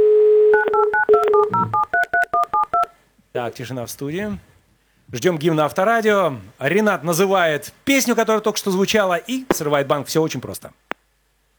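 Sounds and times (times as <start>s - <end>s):
telephone dial tone: 0.0s - 2.9s
touch-tone keypad beeps: 0.6s - 2.9s
speech: 3.4s - 4.5s, 5.1s - 10.8s.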